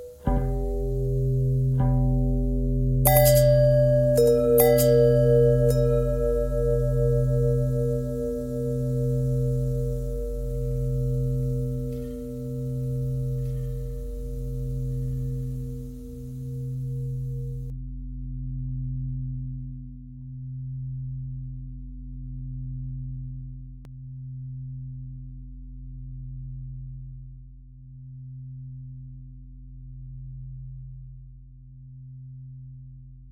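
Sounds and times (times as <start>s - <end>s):
long bell ringing: 0.0s - 17.7s.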